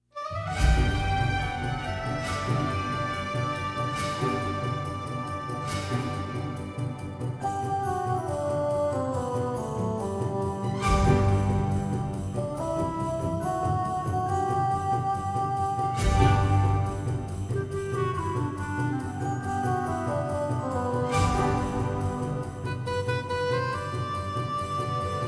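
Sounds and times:
instrumental Christmas carol without choir: 0.4 - 25.2.

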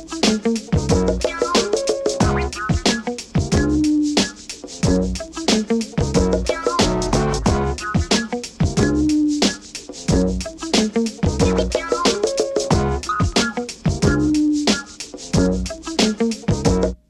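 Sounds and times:
instrumental music: 0.0 - 17.0.

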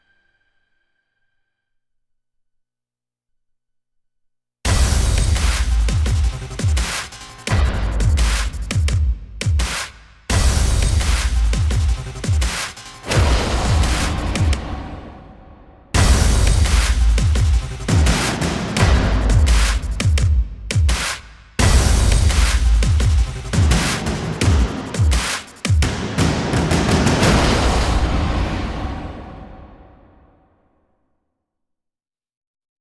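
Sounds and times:
deathstep percussion: 4.7 - 30.3.

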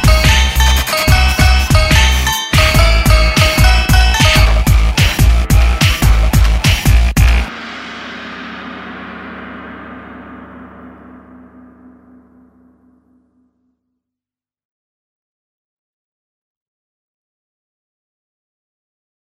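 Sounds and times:
instrumental mix: 0.0 - 13.2.

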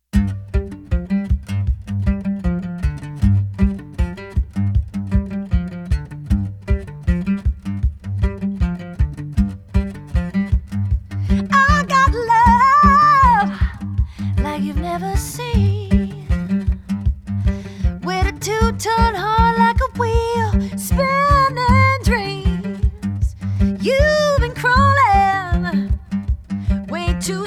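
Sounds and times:
acoustic music: 0.1 - 27.4.

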